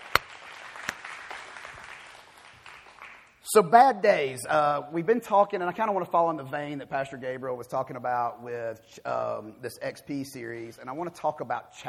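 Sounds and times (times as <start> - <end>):
audience applauding: 0.0 - 3.3
speech: 3.5 - 11.8.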